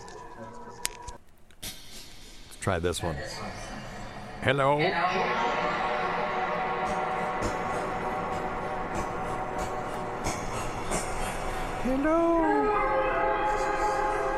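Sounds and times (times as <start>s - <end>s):
speech: 2.6s - 3.7s, 4.4s - 5.8s, 11.9s - 12.9s
voice with reverb and heavy delay effect: 2.9s - 14.3s.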